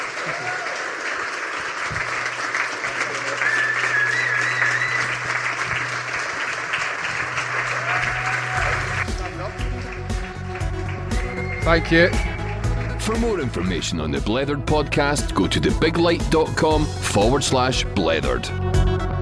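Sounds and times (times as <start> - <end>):
audience applause at a live show at SWG3: 0.0 - 13.8
speech: 0.2 - 0.7, 11.7 - 12.3, 13.0 - 19.1.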